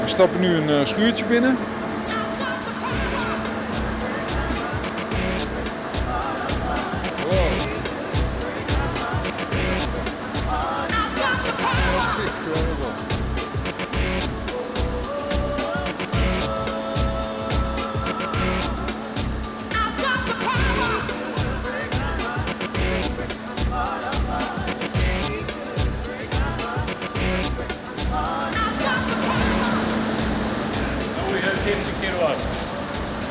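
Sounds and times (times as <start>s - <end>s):
speech: 0.1s - 1.8s
old 1936 generator running: 2.9s - 33.2s.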